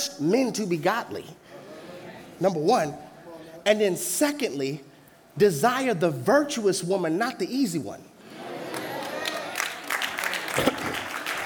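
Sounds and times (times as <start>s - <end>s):
speech: 0.2s - 1.5s, 2.4s - 8.1s
audience clapping: 8.6s - 11.4s.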